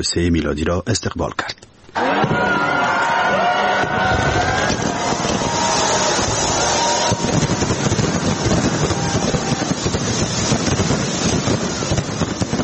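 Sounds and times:
speech: 0:00.0 - 0:02.7
New Year fireworks bursting and crackling: 0:01.9 - 0:12.6
cheering crowd at New Year: 0:01.9 - 0:12.6
wind-like rumble: 0:04.0 - 0:12.6.

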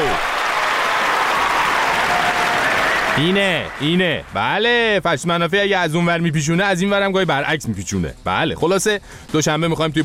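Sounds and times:
studio audience applause: 0:00.0 - 0:04.0
speech: 0:03.2 - 0:10.0.

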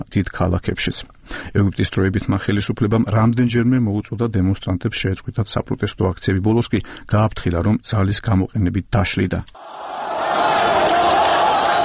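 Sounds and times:
speech: 0:00.1 - 0:09.8
crowd of Mohamed Morsi supporters shouting at an Egyptian protest: 0:09.6 - 0:11.8.

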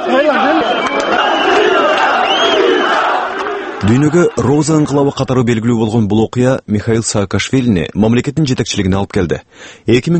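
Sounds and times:
protesters outside parliament shouting in support of Saakashvili: 0:00.0 - 0:04.7
speech: 0:03.8 - 0:10.1.

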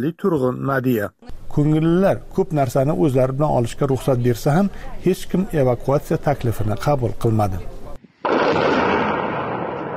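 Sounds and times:
speech: 0:00.0 - 0:07.7
explosion near Bakhmut: 0:08.2 - 0:09.9.

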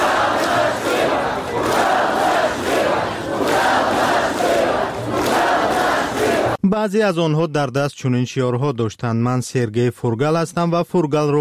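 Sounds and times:
protest crowd chanting slogans: 0:00.0 - 0:06.6
speech: 0:06.8 - 0:11.3.

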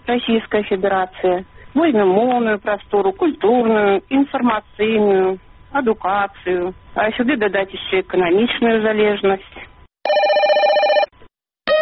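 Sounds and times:
speech: 0:00.1 - 0:10.3
telephone ringing as a jingle for a listener call-in segment: 0:10.0 - 0:11.8.

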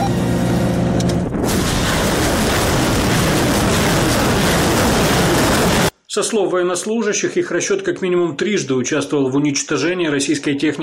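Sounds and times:
engine hum: 0:00.0 - 0:01.6
multiple rocket launcher firing: 0:01.3 - 0:05.9
speech: 0:06.2 - 0:10.8.

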